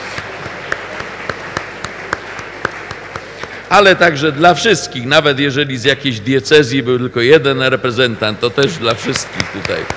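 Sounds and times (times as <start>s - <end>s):
audience applause: 0.0s - 4.5s, 8.7s - 9.9s
speech: 3.7s - 9.9s.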